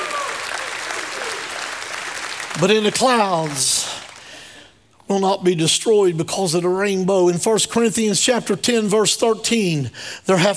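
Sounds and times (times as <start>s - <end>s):
audience shouting praise: 0.0s - 1.5s
audience hand clapping: 0.0s - 4.4s
speech: 2.6s - 4.0s, 5.1s - 10.5s.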